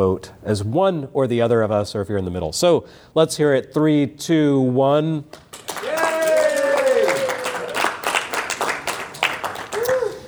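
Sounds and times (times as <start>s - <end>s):
speech: 0.0s - 5.4s
audience golf clap, light polite applause: 5.3s - 10.2s.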